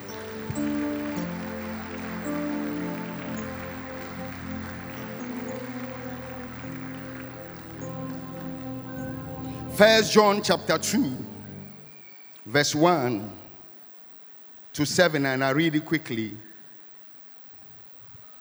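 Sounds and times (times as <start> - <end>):
audience clapping: 0.0 - 11.9
speech: 9.8 - 11.3, 12.5 - 13.4, 14.8 - 16.5.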